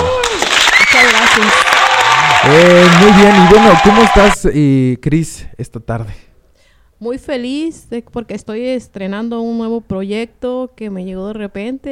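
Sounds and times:
applause: 0.0 - 4.4
speech: 2.5 - 6.3, 7.0 - 11.8.

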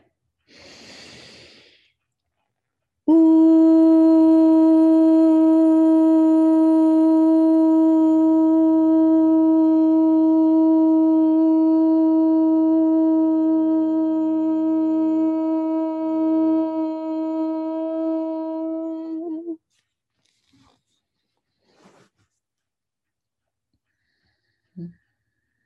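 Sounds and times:
voices chanting ooh: 3.1 - 19.6.

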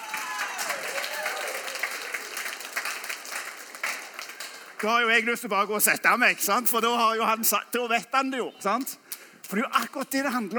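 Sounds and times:
audience applause: 0.0 - 5.3
speech: 4.8 - 10.5.

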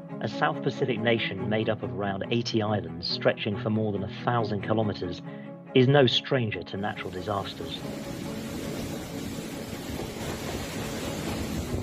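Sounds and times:
speech: 0.2 - 8.3
Cyclone Judy winds gusting to 200 kilometres per hour in Vanuatu: 7.5 - 11.8.

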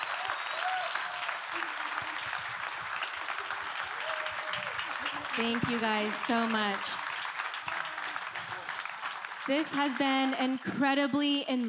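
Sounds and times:
audience round of applause: 0.0 - 11.0
speech: 5.4 - 7.0, 9.5 - 11.6.

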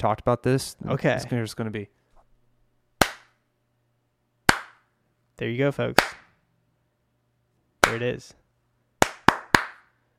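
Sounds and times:
speech: 0.0 - 2.0, 5.4 - 6.1, 7.9 - 8.4
single hand clap for edit sync: 4.5 - 4.8, 6.0 - 6.3, 9.0 - 9.9.

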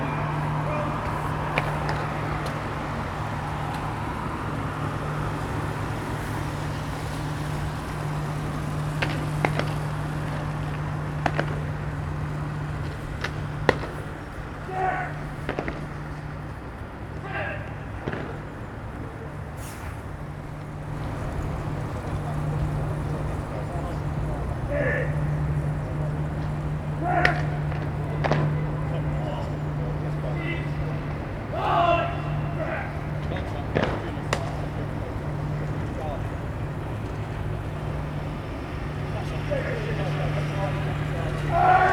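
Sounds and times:
military drill practice on a damp parade ground: 0.0 - 41.9.

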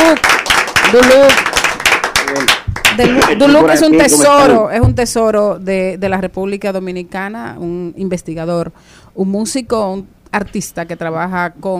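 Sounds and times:
audience applause: 0.0 - 4.0
speech: 0.9 - 1.6, 2.3 - 11.7.

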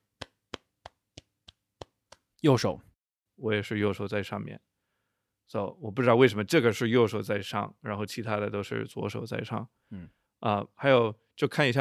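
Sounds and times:
hand clapping: 0.0 - 2.3
speech: 2.4 - 4.7, 5.5 - 11.8.

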